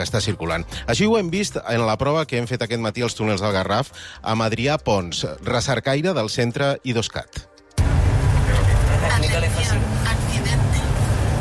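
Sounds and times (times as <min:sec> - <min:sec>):
speech: 0:00.0 - 0:07.5
bus interior road and engine rumble: 0:07.8 - 0:11.4.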